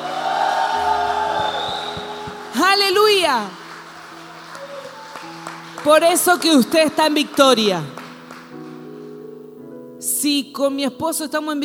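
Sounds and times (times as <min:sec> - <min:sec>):
audience shouting and cheering for joy: 0:00.0 - 0:05.7
speech: 0:02.8 - 0:03.6, 0:05.8 - 0:08.0, 0:10.2 - 0:11.6.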